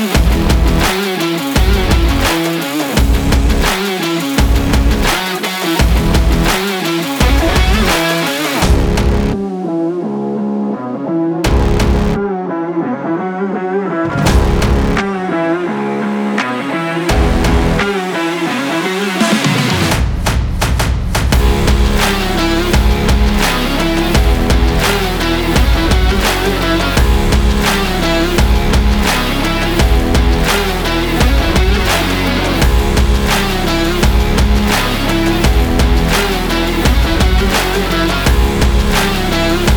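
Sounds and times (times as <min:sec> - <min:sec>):
powerful energetic sport rock trailer music: 0:00.0 - 0:20.0, 0:21.3 - 0:39.7.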